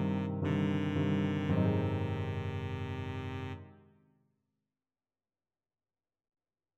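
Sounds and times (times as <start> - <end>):
baritone saxophone: 0.0 - 3.7.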